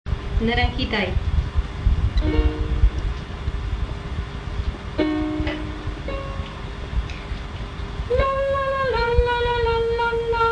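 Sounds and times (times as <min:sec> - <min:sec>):
bass: 0:00.1 - 0:10.5.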